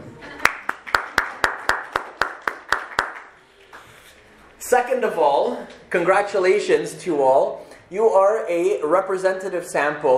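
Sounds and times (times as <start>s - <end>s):
hand claps at a talk: 0.4s - 3.9s
speech: 4.7s - 10.1s.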